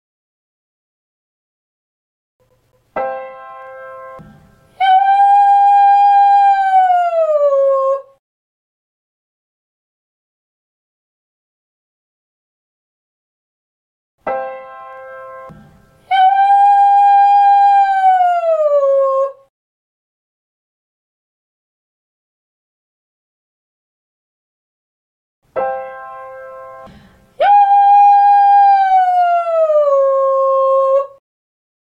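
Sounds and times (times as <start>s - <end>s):
ascending cry: 4.8s - 8.1s, 16.1s - 19.4s, 27.4s - 31.2s.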